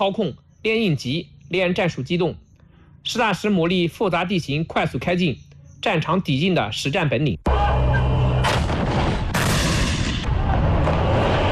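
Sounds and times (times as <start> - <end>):
speech: 0.0 - 2.4, 3.0 - 7.6
continuous deep rumble: 7.5 - 11.4
heavy artillery fire from a live-fire military drill: 8.4 - 11.4.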